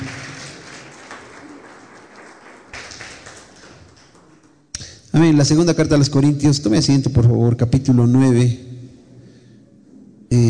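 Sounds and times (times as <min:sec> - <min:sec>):
audience applause: 0:00.0 - 0:04.6
speech: 0:05.2 - 0:08.7.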